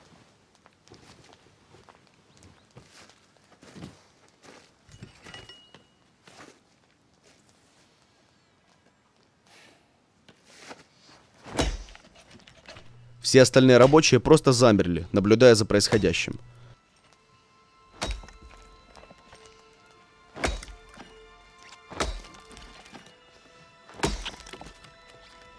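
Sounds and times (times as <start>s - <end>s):
axe chopping into a tree stump to split it: 11.5s - 12.1s, 18.0s - 19.6s, 20.3s - 23.1s, 23.9s - 24.9s
speech: 13.3s - 16.6s.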